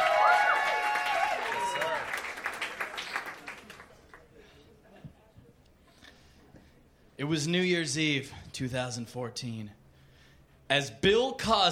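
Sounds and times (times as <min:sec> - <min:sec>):
audience clapping hands: 0:00.0 - 0:04.3
speech: 0:07.2 - 0:09.8, 0:10.7 - 0:11.7.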